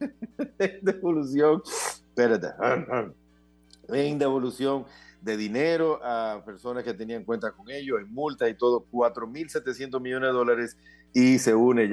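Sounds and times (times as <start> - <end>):
laughter: 0.0 - 1.0
speech: 0.0 - 3.2, 3.9 - 11.9
person sneezing: 1.7 - 2.0.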